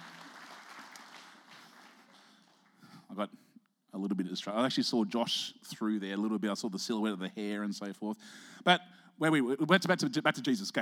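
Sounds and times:
audience clapping: 0:00.0 - 0:02.9
speech: 0:03.2 - 0:10.8.

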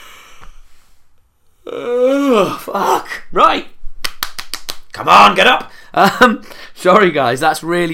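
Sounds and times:
person yawning: 0:01.6 - 0:03.2
speech: 0:01.8 - 0:03.7, 0:05.0 - 0:07.9.

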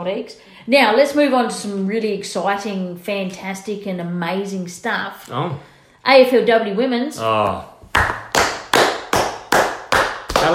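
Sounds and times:
speech: 0:00.0 - 0:07.7
hand claps: 0:07.8 - 0:10.5.

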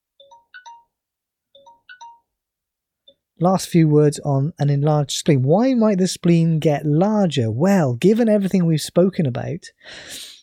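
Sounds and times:
timer alarm chiming a short electronic melody: 0:00.2 - 0:01.0, 0:01.6 - 0:02.3
speech: 0:03.4 - 0:10.3.

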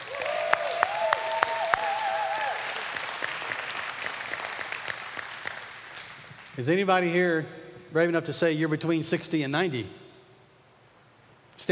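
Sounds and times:
audience hand clapping: 0:00.0 - 0:06.6
speech: 0:06.6 - 0:10.0.

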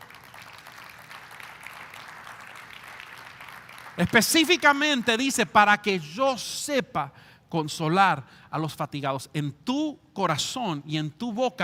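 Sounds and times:
audience applause: 0:00.0 - 0:04.4
speech: 0:04.0 - 0:11.6.

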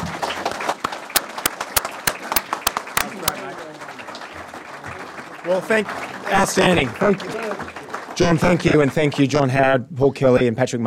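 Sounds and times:
audience applause: 0:00.0 - 0:09.5
speech: 0:05.5 - 0:10.8.

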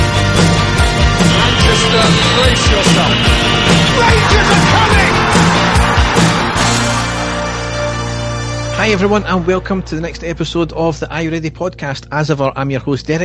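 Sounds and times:
stadium crowd cheering, yelling and whooping: 0:00.2 - 0:09.5
speech: 0:08.9 - 0:13.2.

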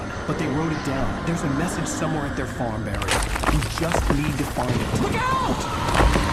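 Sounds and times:
speech: 0:00.3 - 0:06.2
car struck by rock falling from hill: 0:03.0 - 0:05.2.

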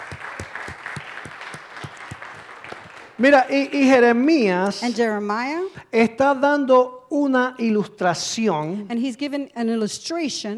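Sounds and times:
audience clapping rhythmically: 0:00.0 - 0:03.9
speech: 0:03.2 - 0:10.5.

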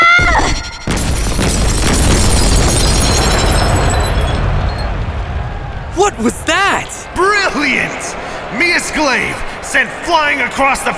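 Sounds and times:
explosions shattering walls: 0:00.2 - 0:07.4
speech: 0:09.1 - 0:10.9.

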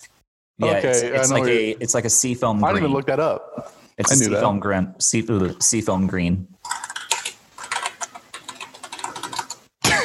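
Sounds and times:
speech: 0:00.6 - 0:06.8
typing on a computer keyboard: 0:06.7 - 0:09.7.

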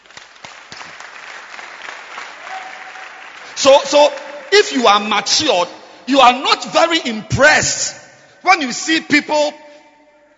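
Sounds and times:
audience clapping hands: 0:00.0 - 0:05.3
speech: 0:03.6 - 0:09.6.

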